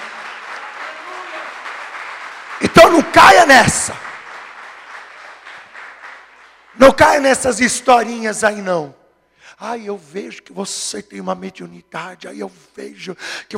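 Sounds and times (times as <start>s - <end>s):
audience applauding: 0.0s - 7.4s
speech: 2.9s - 4.1s, 6.9s - 13.5s.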